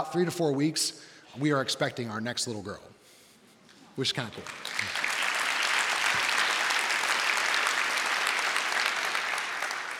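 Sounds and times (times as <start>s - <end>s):
speech: 0.0s - 2.9s, 4.0s - 4.9s
audience clapping: 4.2s - 9.9s.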